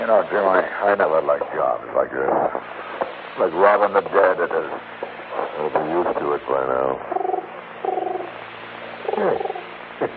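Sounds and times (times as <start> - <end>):
speech: 0.0 - 7.3, 9.2 - 10.1
pigeon cooing on a windowsill: 7.1 - 8.3, 9.0 - 10.1.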